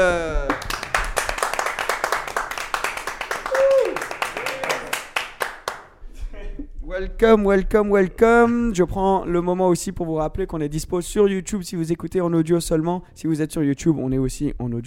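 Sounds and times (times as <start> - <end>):
people cheering: 0.0 - 5.7
clapping and applause for arriving guest: 0.0 - 6.0
speech: 7.0 - 14.8.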